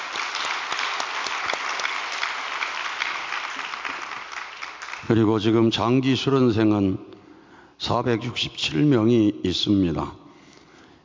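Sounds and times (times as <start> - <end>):
sustained applause from a large audience: 0.0 - 5.1
speech: 5.1 - 7.1, 7.8 - 10.2.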